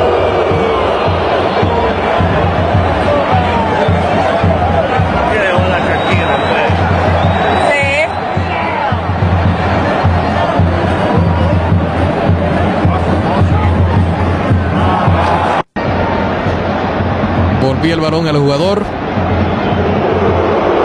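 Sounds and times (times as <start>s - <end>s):
stadium crowd in Las Vegas roaring during a soccer match: 0.0s - 20.8s
speech: 17.8s - 19.0s.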